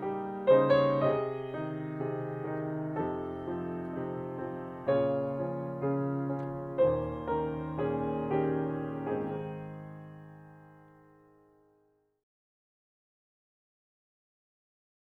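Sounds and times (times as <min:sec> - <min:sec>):
reflective music: 0:00.0 - 0:12.0.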